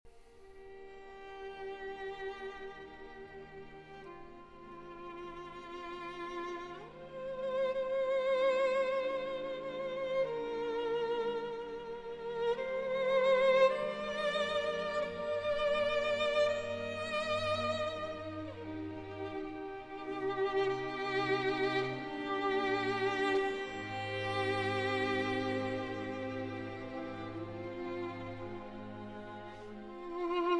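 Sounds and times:
violin concerto adagio in G minor: 0.1s - 30.5s.

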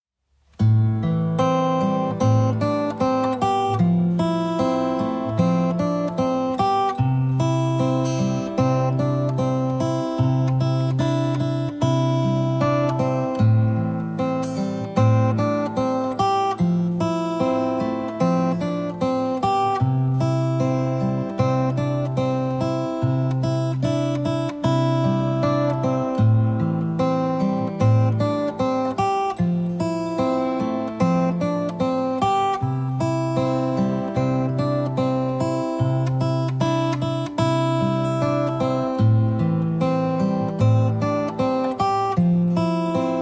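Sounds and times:
guitar arrangement: 0.4s - 43.1s.

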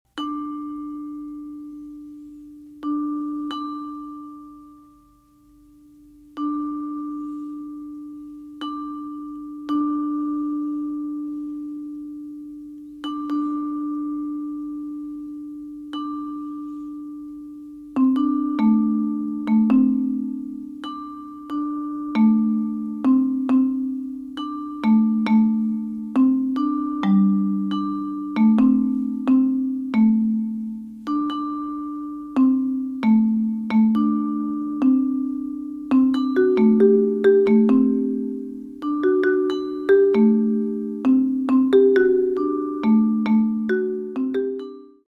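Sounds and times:
percussion: 0.1s - 45.0s.

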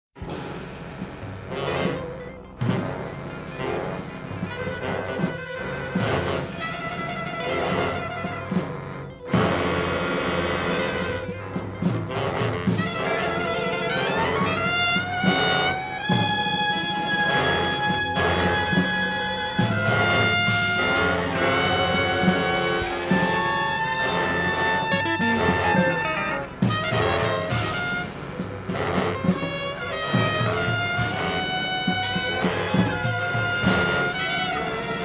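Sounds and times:
drums: 0.1s - 35.0s.

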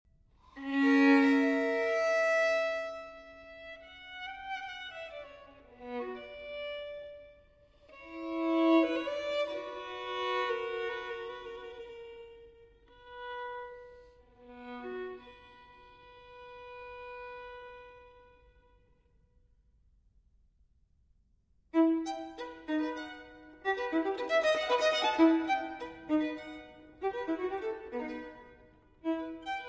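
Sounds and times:
solo violin: 0.4s - 19.0s, 21.7s - 29.6s.

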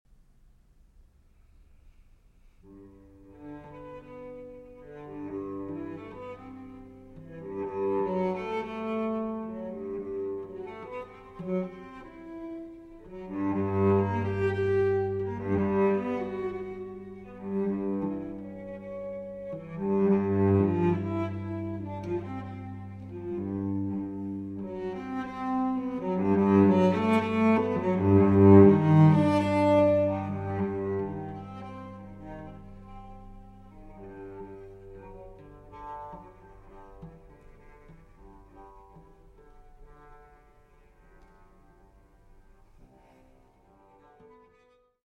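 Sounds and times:
cello playing a barcarolle: 1.3s - 45.0s.

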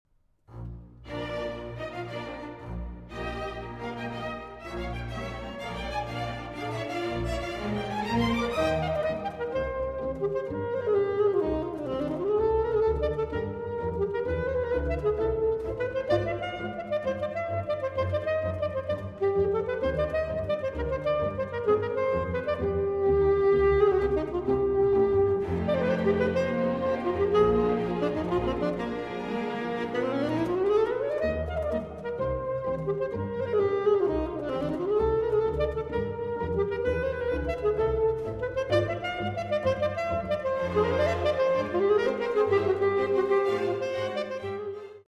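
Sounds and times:
saxophone concerto: 1.1s - 45.0s.

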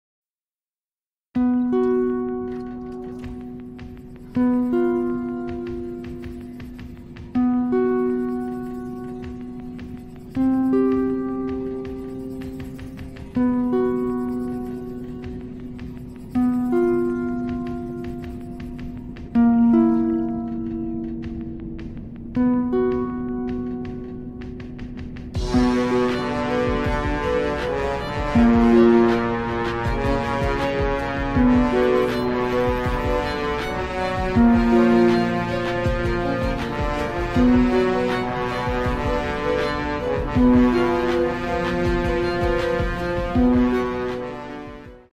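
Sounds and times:
steampunk music: 1.4s - 45.1s.

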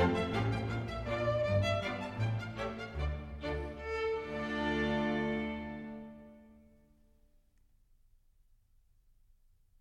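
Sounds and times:
folk dance music: 0.0s - 6.6s.

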